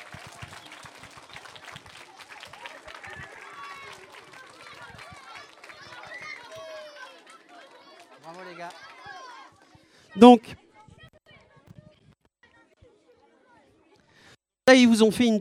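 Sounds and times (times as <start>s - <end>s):
audience applause: 0.0s - 9.5s
voices calling and cheering: 0.0s - 14.0s
speech: 10.2s - 10.6s, 14.7s - 15.3s.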